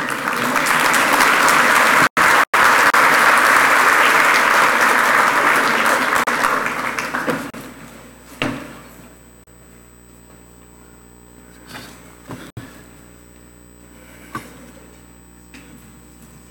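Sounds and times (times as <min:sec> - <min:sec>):
warm applause: 0:00.0 - 0:07.6.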